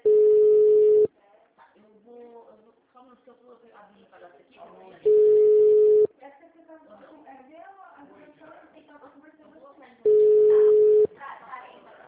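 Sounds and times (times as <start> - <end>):
telephone busy signal: 0.0 - 1.1, 5.1 - 6.1, 10.1 - 11.1
person talking: 10.1 - 11.0.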